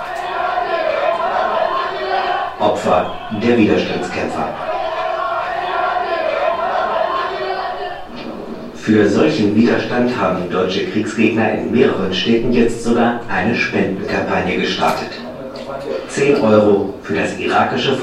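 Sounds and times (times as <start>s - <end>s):
crowd cheering: 0.0s - 10.2s
speech: 2.9s - 4.7s, 8.9s - 15.2s, 16.2s - 18.0s.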